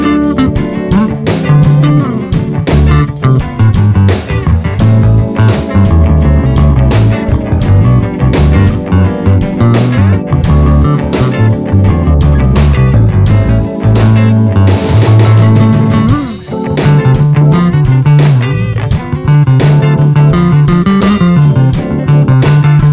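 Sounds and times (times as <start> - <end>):
jazz funk 12 bar blues bass solo in D: 0.0 - 22.9.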